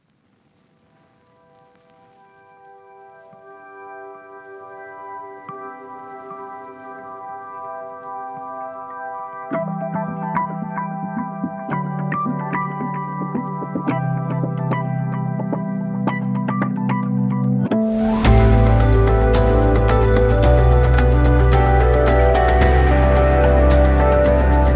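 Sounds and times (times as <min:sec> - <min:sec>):
electric piano: 0:00.9 - 0:24.7.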